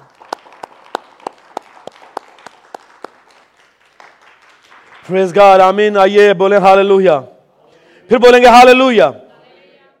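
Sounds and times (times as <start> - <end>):
loud audience applause: 0.0 - 5.8
speech: 5.1 - 7.3, 8.1 - 9.2.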